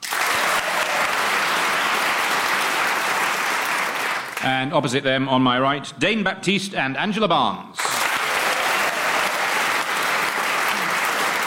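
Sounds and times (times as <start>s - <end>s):
audience applause greeting the teams at a panel show: 0.0s - 4.6s, 7.8s - 11.4s
speech: 4.4s - 7.8s.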